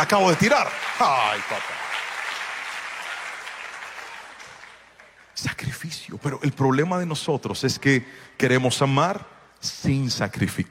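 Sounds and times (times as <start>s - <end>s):
speech: 0.0s - 1.8s, 5.9s - 10.6s
audience applause: 0.0s - 5.4s.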